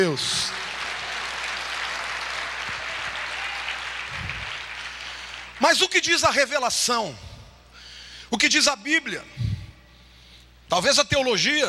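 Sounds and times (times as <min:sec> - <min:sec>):
speech: 0:00.0 - 0:00.4, 0:05.6 - 0:07.3, 0:08.3 - 0:09.4, 0:10.7 - 0:11.6
audience applauding: 0:00.0 - 0:05.6.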